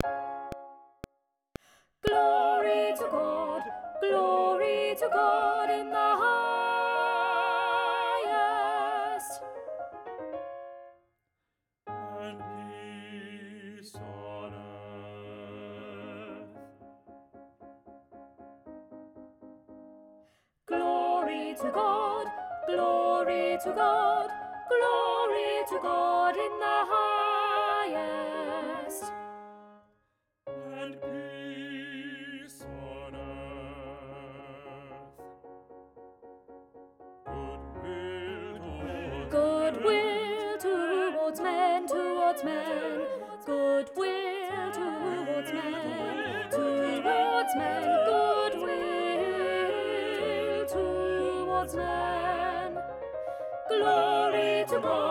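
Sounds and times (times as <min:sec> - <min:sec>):
alto voice singing: 0:02.0 - 0:09.4, 0:12.1 - 0:16.7, 0:20.7 - 0:29.8, 0:30.6 - 0:35.1, 0:37.3 - 0:52.8, 0:53.7 - 0:55.0.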